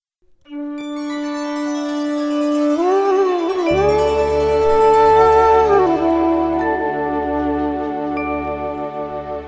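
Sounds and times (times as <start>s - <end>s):
morning flute ringtone: 0.5s - 9.4s.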